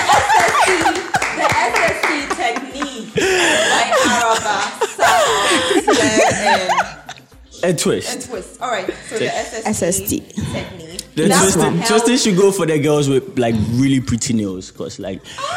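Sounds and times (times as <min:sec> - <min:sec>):
crowd clapping: 0:00.0 - 0:03.2
laughter: 0:00.0 - 0:07.4, 0:08.8 - 0:12.1, 0:15.3 - 0:15.5
speech: 0:07.7 - 0:15.5.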